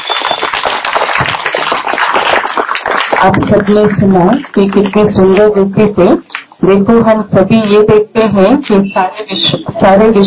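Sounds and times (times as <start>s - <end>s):
audience applause welcoming a speaker: 0.0s - 5.0s
speech: 3.2s - 10.2s.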